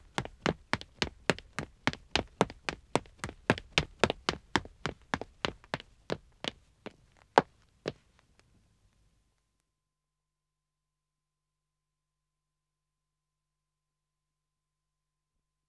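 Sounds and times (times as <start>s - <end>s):
man running footsteps on dead wood: 0.0s - 8.2s.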